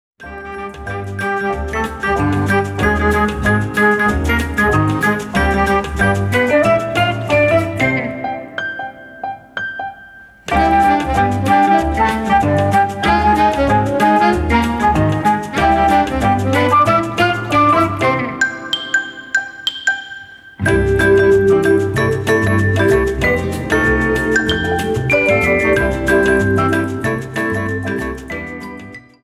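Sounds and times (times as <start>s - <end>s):
band playing: 1.4s - 9.6s, 10.3s - 27.8s.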